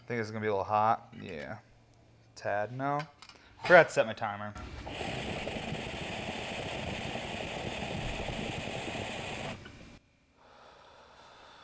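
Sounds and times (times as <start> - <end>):
speech: 0.1 - 1.7, 2.4 - 5.2
long steady inhale of a cannabis dab: 4.6 - 11.6.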